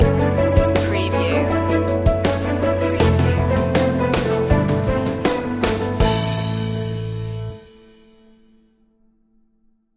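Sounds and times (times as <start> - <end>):
building success music stinger: 0.8 - 8.0.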